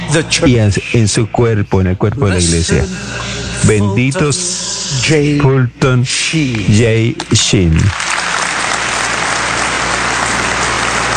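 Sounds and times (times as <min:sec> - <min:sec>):
speech: 0:00.1 - 0:08.4
audience applause: 0:07.2 - 0:11.1.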